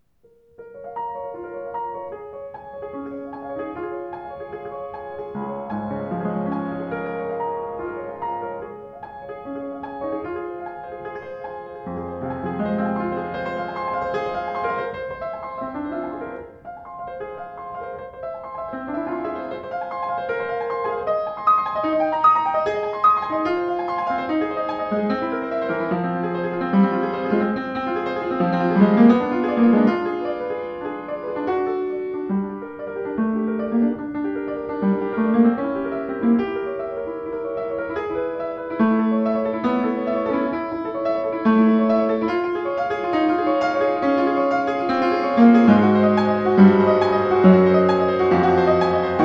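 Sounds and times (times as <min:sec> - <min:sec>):
Sauter piano: 0:00.0 - 0:49.2.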